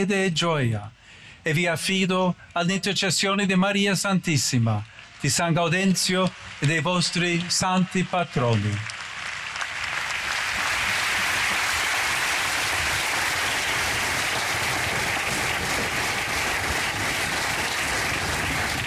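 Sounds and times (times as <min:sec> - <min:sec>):
speech: 0:00.0 - 0:09.0
audience applauding after a homily: 0:05.0 - 0:18.8.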